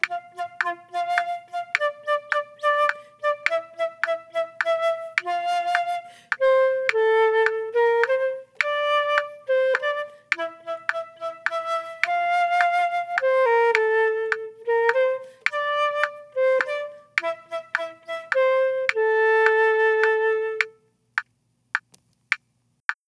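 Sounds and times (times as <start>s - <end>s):
trio with percussion: 0.0s - 20.8s.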